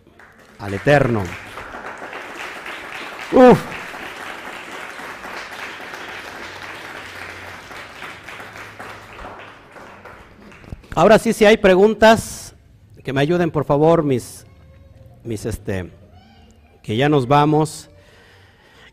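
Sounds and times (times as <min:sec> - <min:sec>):
audience applauding: 0:00.0 - 0:11.2
speech: 0:00.6 - 0:01.4, 0:03.3 - 0:03.8, 0:11.0 - 0:12.4, 0:13.0 - 0:14.4, 0:15.2 - 0:16.0, 0:16.8 - 0:17.9.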